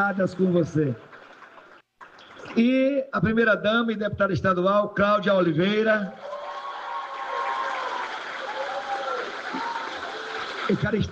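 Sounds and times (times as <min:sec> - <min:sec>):
speech: 0:00.0 - 0:01.1, 0:02.6 - 0:06.3, 0:10.7 - 0:11.1
audience applause: 0:00.2 - 0:01.8, 0:06.1 - 0:11.1.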